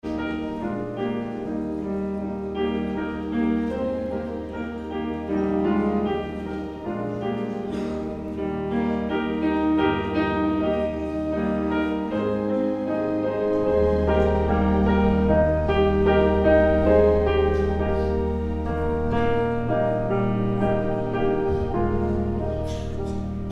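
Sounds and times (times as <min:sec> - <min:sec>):
prelude music: 0:00.0 - 0:23.5.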